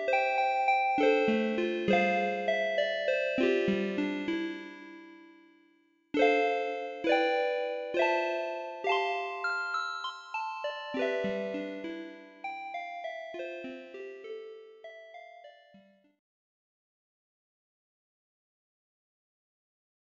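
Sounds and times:
music box melody: 0.0 - 5.4, 6.2 - 16.0.

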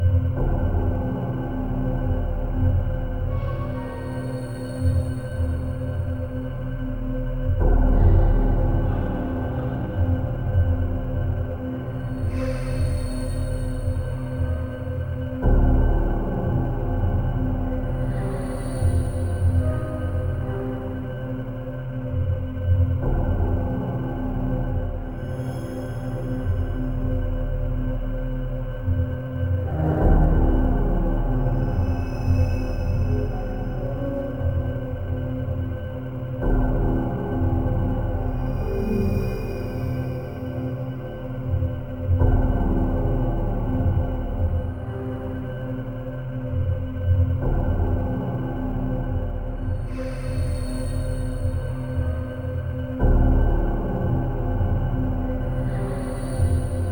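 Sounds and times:
spooky ambient loop: 0.0 - 56.8.

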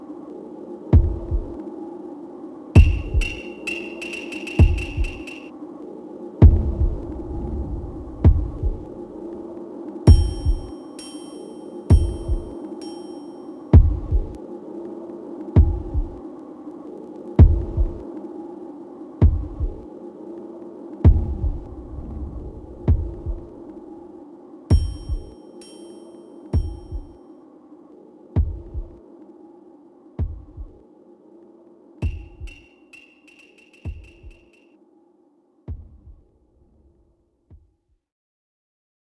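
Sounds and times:
meditation music: 2.7 - 18.6, 21.0 - 31.1, 31.8 - 34.8.

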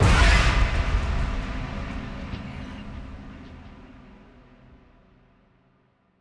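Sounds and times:
instant shock sound effect: 0.0 - 3.2.

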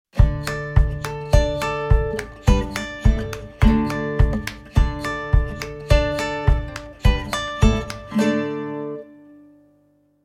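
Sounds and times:
puzzle completion music: 0.2 - 8.4.

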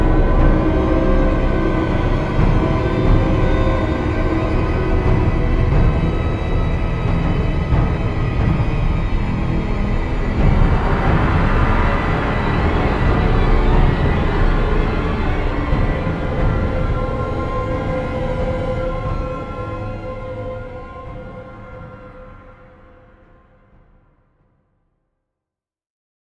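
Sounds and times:
boss intro music in major key: 0.0 - 20.0.

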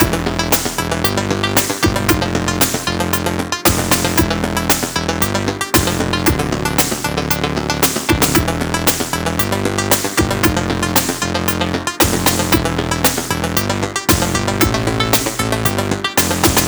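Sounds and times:
music loop: 0.0 - 16.6.

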